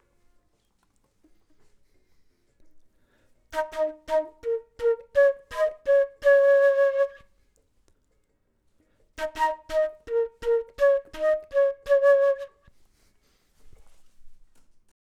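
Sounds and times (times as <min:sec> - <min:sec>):
flute: 0:03.5 - 0:07.4, 0:09.2 - 0:12.7.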